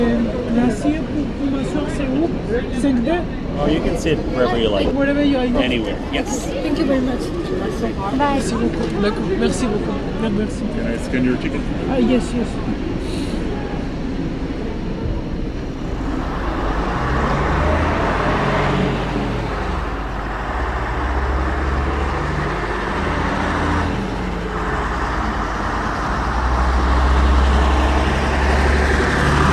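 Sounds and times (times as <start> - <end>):
night bus engine droning: 0.0 - 29.5
road noise: 0.0 - 29.5
speech: 2.5 - 12.9.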